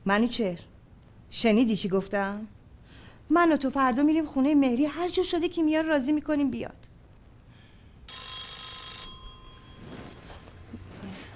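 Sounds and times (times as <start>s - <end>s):
speech: 0.0s - 0.7s, 1.3s - 2.6s, 3.3s - 6.9s
telephone bell ringing: 8.1s - 10.4s.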